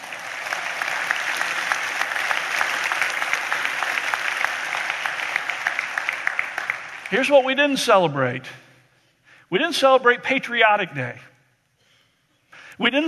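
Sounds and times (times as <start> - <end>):
audience clapping for veterans: 0.0 - 7.8
speech: 7.1 - 8.6, 9.5 - 11.3, 12.8 - 13.0.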